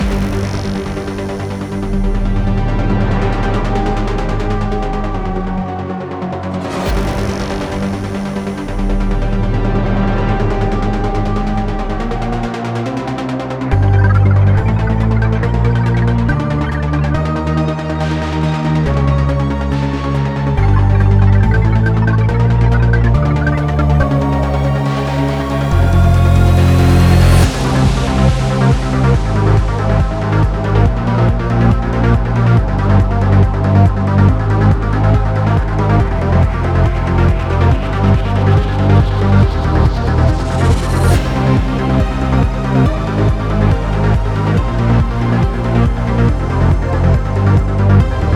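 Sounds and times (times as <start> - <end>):
intense combat music: 0.0 - 48.3.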